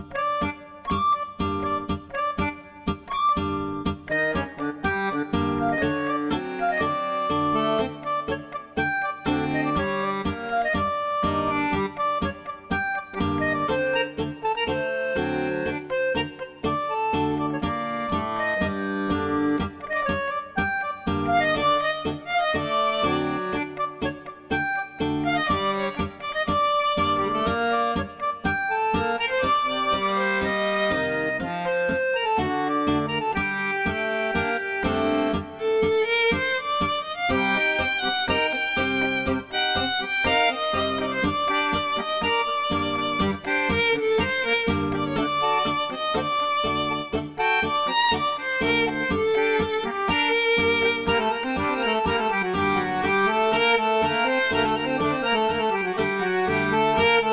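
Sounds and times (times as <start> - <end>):
tango trio playing: 0.1 - 57.3.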